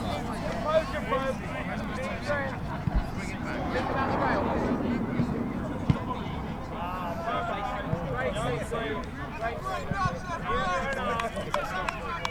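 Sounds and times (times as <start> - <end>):
crowd babble at a rugby match at Folkestone: 0.0 - 12.2
low rumble: 1.4 - 8.4.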